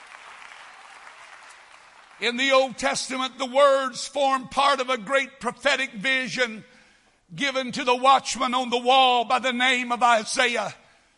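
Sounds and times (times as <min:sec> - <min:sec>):
audience clapping hands: 0:00.0 - 0:02.4
speech: 0:02.2 - 0:06.7, 0:07.3 - 0:10.8.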